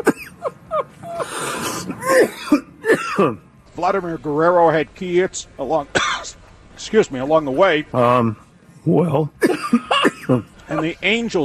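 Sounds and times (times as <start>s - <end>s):
man coughing harshly after something went down the wrong pipe: 0.0s - 0.4s, 1.8s - 3.4s, 6.0s - 6.4s, 9.4s - 10.8s
man clearing throat: 2.0s - 3.4s, 6.0s - 6.3s, 9.4s - 10.5s
speech: 3.2s - 11.4s.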